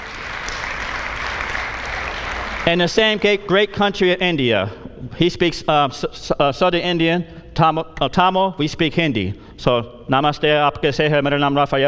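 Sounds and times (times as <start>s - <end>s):
audience applause for a veteran missionary: 0.0s - 2.8s
speech: 2.6s - 11.8s.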